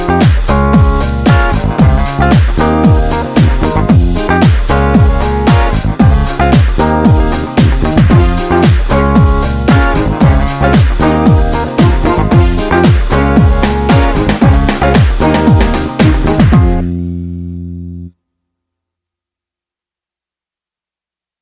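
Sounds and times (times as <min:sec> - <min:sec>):
workout music: 0:00.0 - 0:17.0.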